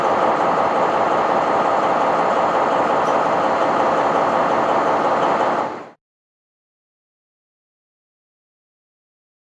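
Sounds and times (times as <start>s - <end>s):
diesel locomotive at a railway station: 0.0s - 6.0s.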